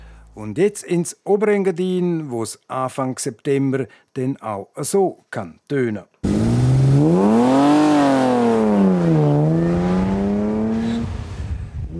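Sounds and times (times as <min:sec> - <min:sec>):
speech: 0:00.4 - 0:06.4
vintage racing car engine revving: 0:06.2 - 0:11.9.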